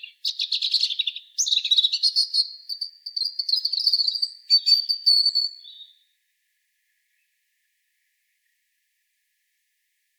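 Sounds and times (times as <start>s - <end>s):
European robin Erithacus rubecula singing: 0.0s - 6.0s.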